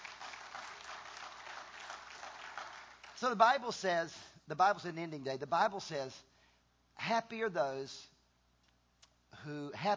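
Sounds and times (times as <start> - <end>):
crowd applauding: 0.0 - 3.2
speech: 3.2 - 6.3, 7.0 - 8.1, 9.4 - 9.9.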